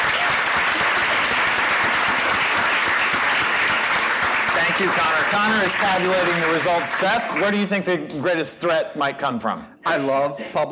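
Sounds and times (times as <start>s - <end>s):
audience applause: 0.0s - 7.9s
speech: 4.8s - 10.7s.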